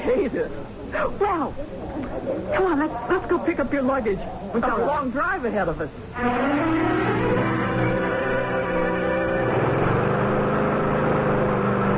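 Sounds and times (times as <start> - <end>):
speech: 0.1 - 6.9
lawn mower engine running: 6.2 - 11.9.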